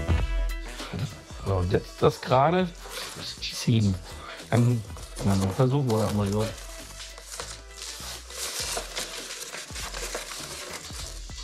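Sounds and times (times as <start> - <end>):
speech: 1.5 - 6.6
crinkly plastic foil tearing as a cutter drags through: 2.8 - 3.3, 4.4 - 11.4.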